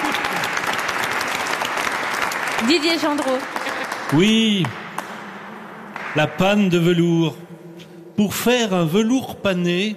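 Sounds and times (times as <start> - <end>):
audience applause: 0.0 - 5.3
speech: 2.6 - 4.8, 6.1 - 7.4, 8.2 - 9.9.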